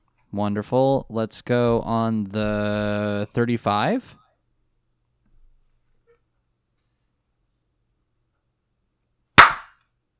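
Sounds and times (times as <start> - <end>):
speech: 0.3 - 4.2
single sharp hand clap: 9.4 - 9.8.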